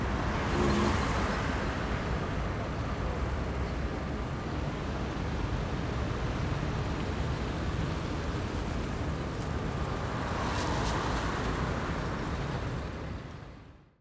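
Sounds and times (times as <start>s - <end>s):
city traffic on an avenue in Buenos Aires by day: 0.0s - 13.9s.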